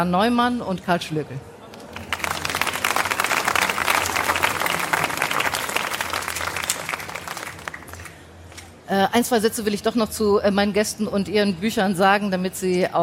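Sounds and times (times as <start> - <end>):
speech: 0.0 - 1.5, 8.9 - 13.0
audience applause welcoming guests to a book discussion event: 1.7 - 8.2.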